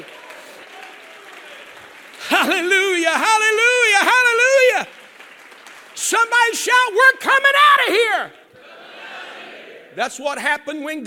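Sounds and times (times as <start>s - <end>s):
audience clapping and applauding: 0.0s - 8.6s
speech: 2.4s - 4.1s, 6.1s - 8.4s, 10.0s - 11.0s.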